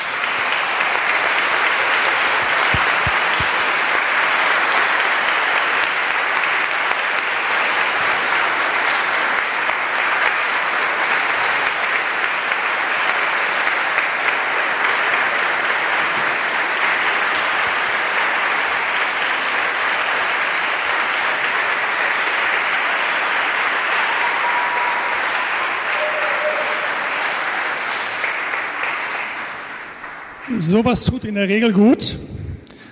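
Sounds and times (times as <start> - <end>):
audience applause: 0.0 - 31.4
speech: 30.7 - 32.3.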